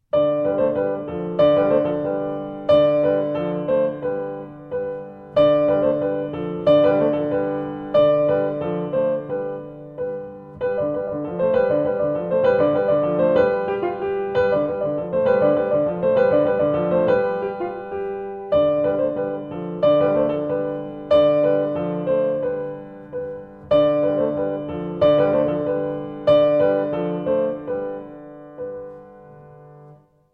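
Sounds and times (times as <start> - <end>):
piano: 0.0 - 30.3.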